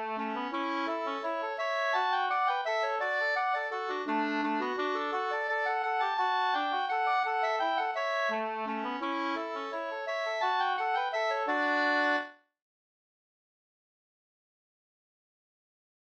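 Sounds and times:
waltz music: 0.0s - 12.3s.

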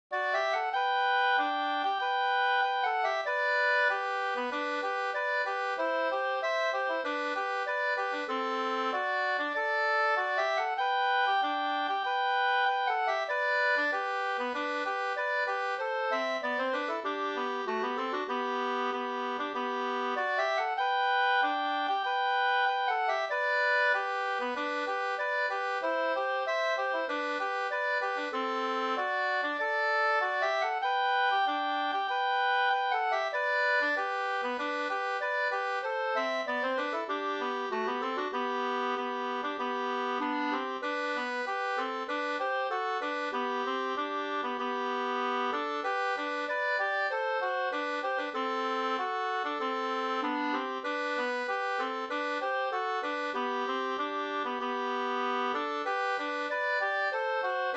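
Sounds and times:
wedding march music: 0.2s - 57.7s.

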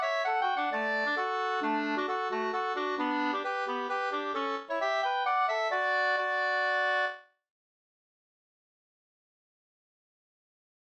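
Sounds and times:
Swedish folk dance polska music: 0.0s - 7.2s.

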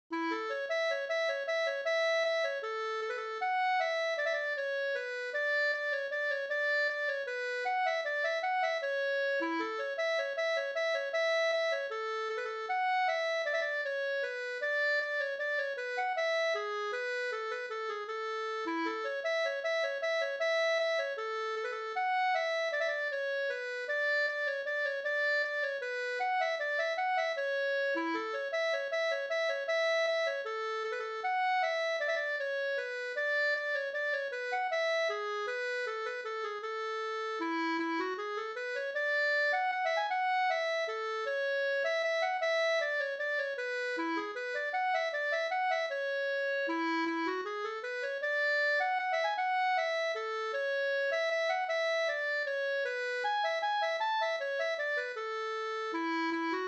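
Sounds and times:
bridal waltz music: 0.1s - 56.6s.

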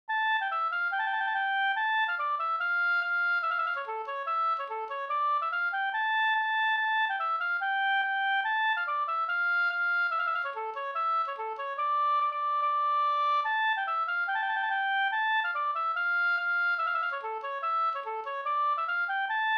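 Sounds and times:
reinlender folk dance music: 0.4s - 19.5s.

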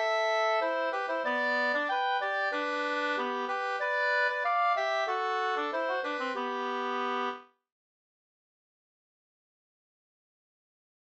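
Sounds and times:
folk walking tune: 0.0s - 7.4s.

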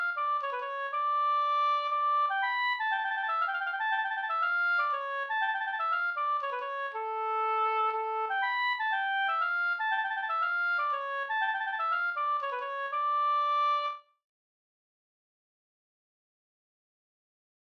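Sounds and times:
polska folk dance tune: 0.0s - 14.0s.

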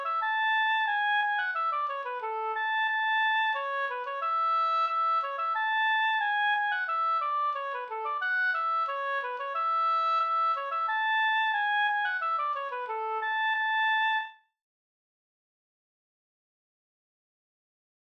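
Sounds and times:
folk walking tune: 0.0s - 14.2s.

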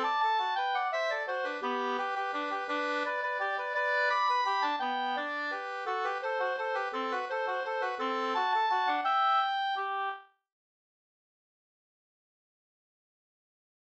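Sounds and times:
waltz music: 0.0s - 10.2s.

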